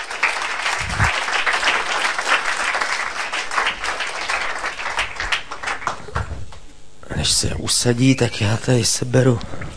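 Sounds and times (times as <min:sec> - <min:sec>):
audience applause: 0:00.0 - 0:06.4
speech: 0:07.2 - 0:09.6.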